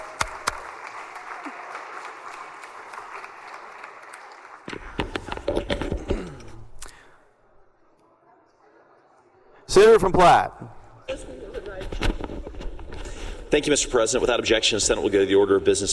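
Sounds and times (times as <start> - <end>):
audience applause: 0.0 - 5.4
speech: 9.8 - 10.6, 13.5 - 15.9.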